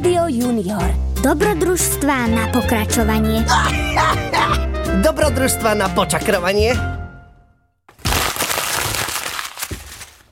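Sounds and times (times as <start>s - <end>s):
speech: 0.3s - 6.9s
paper being crumpled: 7.9s - 10.3s.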